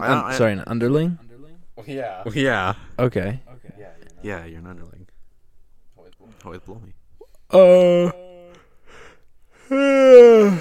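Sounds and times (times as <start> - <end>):
speech: 0.0 - 1.2, 1.8 - 5.1, 6.2 - 8.3, 9.7 - 10.6
person yawning: 7.5 - 10.6.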